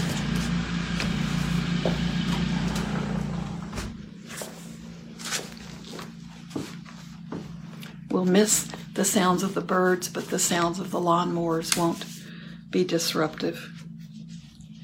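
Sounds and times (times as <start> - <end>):
footsteps: 0.0 - 10.8
speech: 1.8 - 2.1, 8.2 - 12.1, 12.7 - 13.8
door closing: 2.3 - 4.1.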